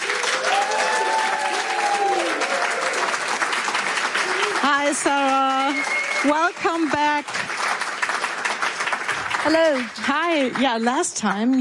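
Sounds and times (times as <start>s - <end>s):
whoop or cheer: 0.0s - 3.1s
audience applause: 0.0s - 11.6s
speech: 4.9s - 7.6s, 9.4s - 11.6s.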